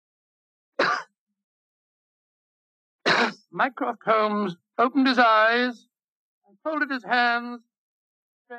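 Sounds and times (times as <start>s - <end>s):
man coughing discreetly: 0.8s - 1.1s, 3.1s - 3.5s
speech: 3.5s - 5.9s, 6.5s - 7.7s.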